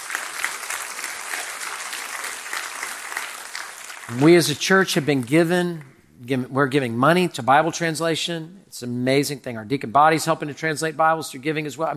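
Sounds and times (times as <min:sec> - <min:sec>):
audience applause: 0:00.0 - 0:04.5
speech: 0:04.1 - 0:11.9.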